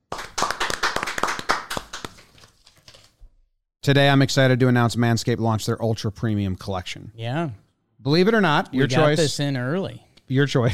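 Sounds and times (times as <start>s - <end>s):
audience applause: 0.1s - 2.2s
speech: 3.9s - 10.7s.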